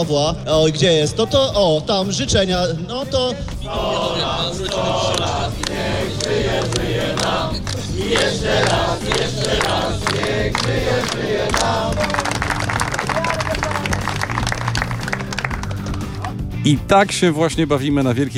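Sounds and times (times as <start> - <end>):
speech: 0.0 - 12.3, 16.6 - 18.3
crowd singing at a celebration: 3.2 - 12.4
people clapping: 3.4 - 16.4
crowd cheering: 3.6 - 16.3.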